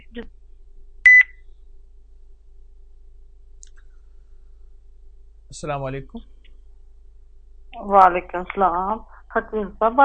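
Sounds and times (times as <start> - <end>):
speech: 0.1 - 0.4, 5.5 - 6.4, 7.8 - 10.0
short electronic beep marking the end of a phone call: 1.1 - 1.4.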